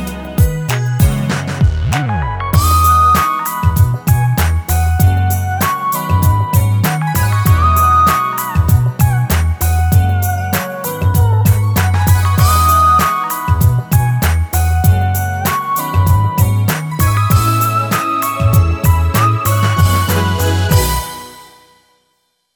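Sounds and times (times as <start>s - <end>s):
Yamaha PSR-550 electric piano factory demo: 0.0s - 21.6s.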